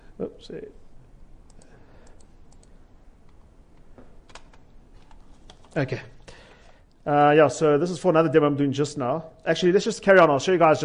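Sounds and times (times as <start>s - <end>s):
speech: 0.2s - 0.8s, 5.8s - 6.2s, 7.0s - 10.8s
faint typing on a computer keyboard: 1.4s - 7.0s.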